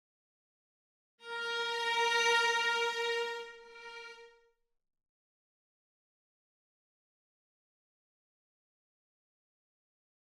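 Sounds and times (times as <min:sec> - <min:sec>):
violas: 0:01.2 - 0:04.3.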